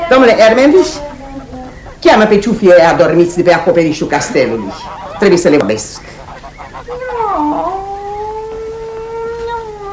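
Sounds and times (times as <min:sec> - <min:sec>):
speech: 0:00.1 - 0:01.1, 0:02.0 - 0:06.1
cat meowing and caterwauling: 0:06.9 - 0:09.9.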